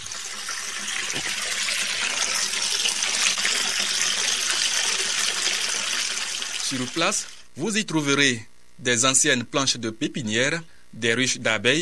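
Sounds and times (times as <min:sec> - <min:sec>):
water flowing from a spring: 0:00.0 - 0:06.9
speech: 0:06.7 - 0:11.8.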